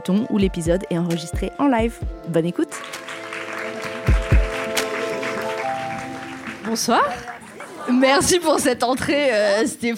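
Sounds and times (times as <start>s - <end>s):
speech: 0.0s - 3.2s, 6.7s - 7.3s, 7.9s - 9.9s
crowd applause: 2.8s - 8.5s.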